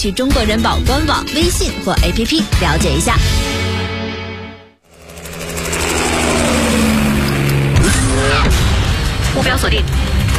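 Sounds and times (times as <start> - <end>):
speech: 0.0 - 3.6, 9.4 - 10.2
V8 sports car engine revving: 4.9 - 9.3.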